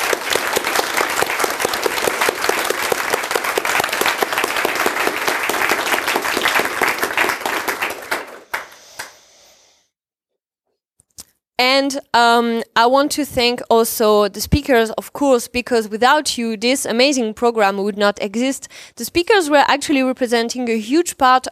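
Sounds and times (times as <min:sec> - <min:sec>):
crowd applauding: 0:00.0 - 0:09.2
speech: 0:11.6 - 0:21.5.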